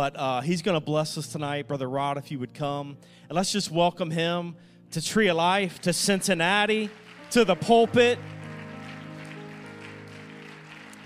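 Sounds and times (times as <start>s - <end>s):
speech: 0.0s - 8.4s
audience applauding: 5.6s - 11.0s.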